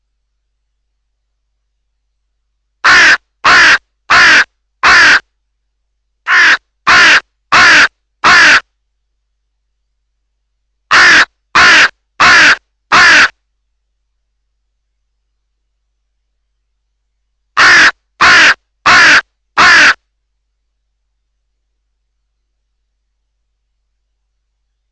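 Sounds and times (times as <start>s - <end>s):
crow cawing: 2.8s - 5.2s, 6.3s - 8.6s, 10.9s - 13.3s, 17.6s - 20.0s.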